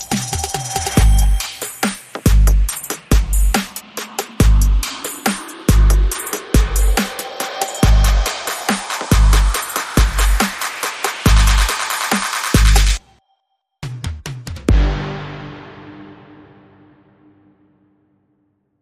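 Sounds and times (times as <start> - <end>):
enchanted trap bass drums: 0.0 - 13.0.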